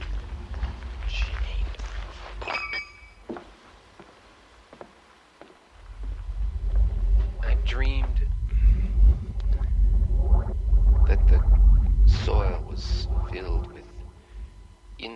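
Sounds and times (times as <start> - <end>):
footsteps walking along a sidewalk: 0.0 - 2.5, 3.2 - 7.4
low steady rumble: 0.0 - 3.2, 5.7 - 15.1.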